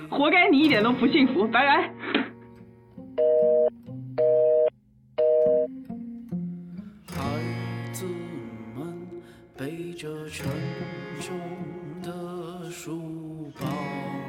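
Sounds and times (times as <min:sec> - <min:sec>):
music: 0:00.0 - 0:14.2
speech: 0:00.2 - 0:02.0
telephone busy signal beeps: 0:03.2 - 0:05.7.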